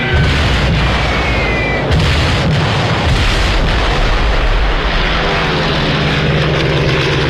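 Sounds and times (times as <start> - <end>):
Stuka dive bomber siren wailing: 0.0 - 2.0
heavy low booms like explosions or gunfire: 0.0 - 6.6
Stuka dive bomber engine roaring through a dive: 0.0 - 7.2.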